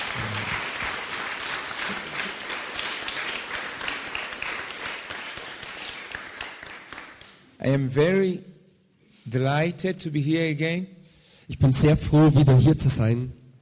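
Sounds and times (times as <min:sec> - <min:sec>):
audience applause: 0:00.0 - 0:07.4
speech: 0:07.6 - 0:08.5, 0:09.3 - 0:13.4.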